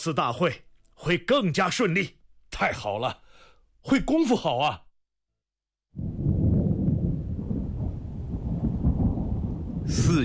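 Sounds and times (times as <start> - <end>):
speech: 0.0 - 3.2, 3.8 - 4.8, 9.9 - 10.2
distant rolling thunder before a rainstorm: 6.0 - 10.2.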